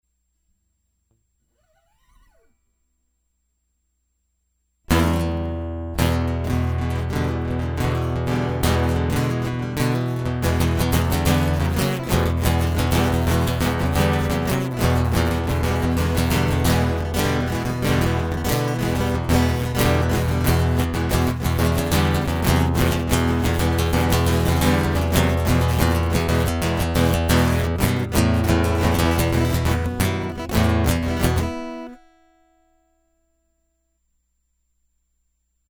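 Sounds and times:
guitar prelude: 4.9 - 33.0.

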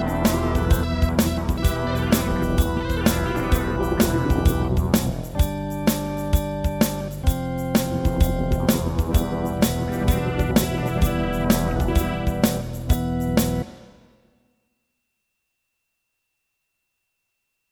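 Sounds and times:
bombastic instrumental music: 0.0 - 14.1.

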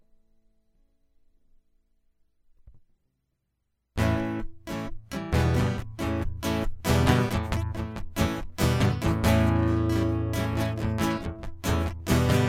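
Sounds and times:
guitar loop: 4.0 - 12.4.

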